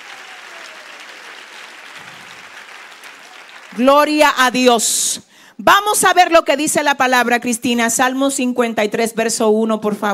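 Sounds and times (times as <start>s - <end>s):
audience applause: 0.0s - 4.2s
speech: 3.7s - 10.1s.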